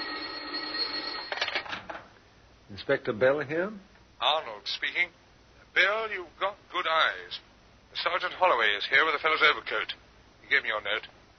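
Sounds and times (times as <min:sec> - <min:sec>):
telephone ringing on the inspector's desk: 0:00.0 - 0:01.7
speech: 0:02.8 - 0:05.2, 0:05.8 - 0:11.2.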